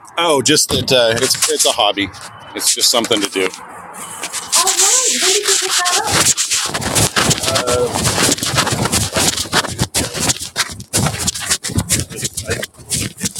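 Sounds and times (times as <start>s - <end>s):
speech: 0.2s - 8.8s
shopping cart shuffling: 4.2s - 13.3s.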